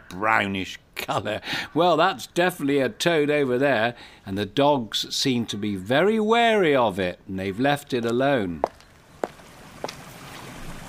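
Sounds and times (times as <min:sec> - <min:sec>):
speech: 0:00.1 - 0:08.8
small stream running fast after heavy rain: 0:09.2 - 0:10.8.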